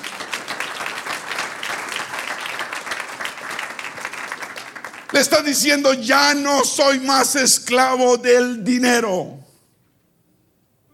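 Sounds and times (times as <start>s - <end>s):
crowd applauding: 0.0s - 6.3s
speech: 5.1s - 9.4s.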